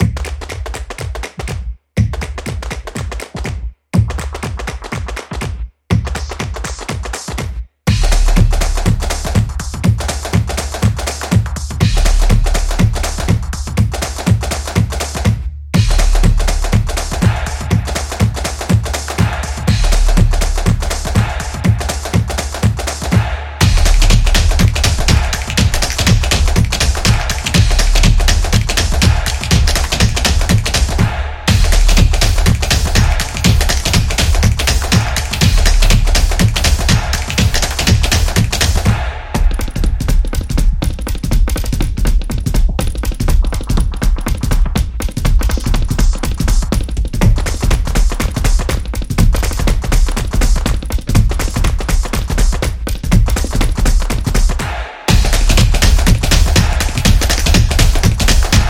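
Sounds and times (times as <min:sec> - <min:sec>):
modern opener drumming: 0:00.0 - 0:58.6.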